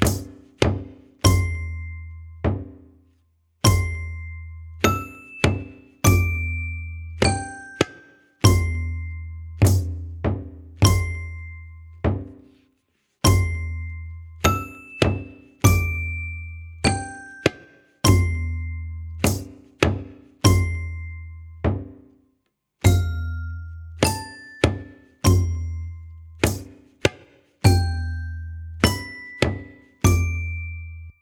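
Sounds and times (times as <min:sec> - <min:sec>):
tabla in a group piece: 0:00.0 - 0:03.0, 0:03.6 - 0:12.6, 0:13.2 - 0:22.1, 0:22.8 - 0:31.2.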